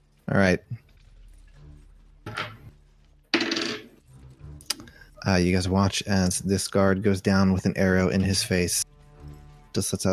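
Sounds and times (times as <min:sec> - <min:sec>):
speech: 0:00.3 - 0:00.8, 0:05.3 - 0:08.9, 0:09.8 - 0:10.1
dice rattling across a hard surface: 0:03.4 - 0:03.9.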